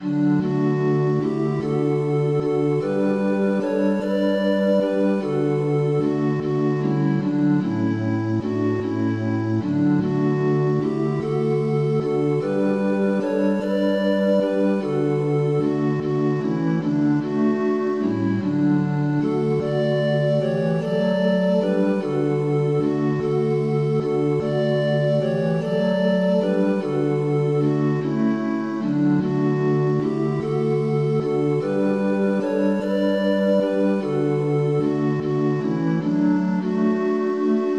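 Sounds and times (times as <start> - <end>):
multi-instrument music: 0.0 - 37.7.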